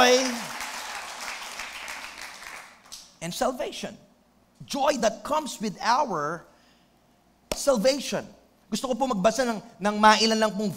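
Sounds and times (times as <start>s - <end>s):
church congregation clapping during a sermon: 0.0s - 3.2s
speech: 3.2s - 6.5s, 7.6s - 10.7s.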